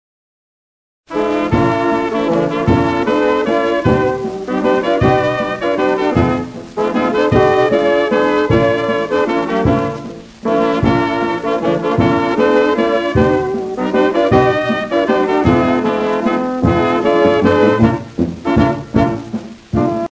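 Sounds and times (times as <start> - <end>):
waltz music: 1.1 - 20.0.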